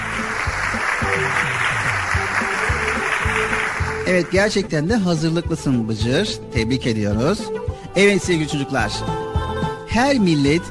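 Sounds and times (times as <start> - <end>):
crowd applause: 0.0 - 4.4
low musical tones: 0.0 - 10.7
speech: 4.1 - 9.2, 9.9 - 10.7.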